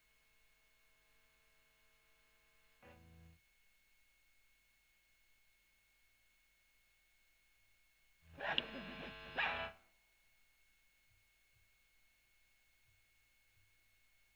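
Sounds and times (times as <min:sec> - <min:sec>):
overdriven electric guitar recorded with Gefell: 0:08.4 - 0:09.7.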